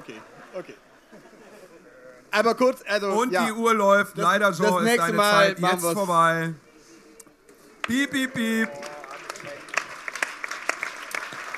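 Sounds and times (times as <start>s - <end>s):
speech: 0.1s - 0.9s, 2.3s - 6.6s, 7.9s - 8.9s
audience applause at a live show: 7.8s - 11.5s.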